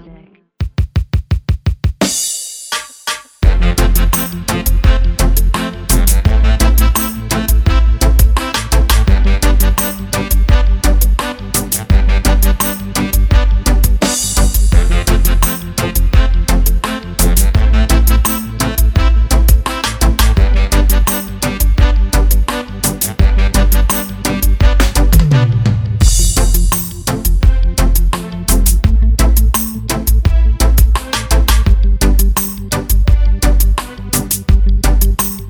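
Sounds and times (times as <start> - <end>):
riddim beat: 0.6 - 35.4.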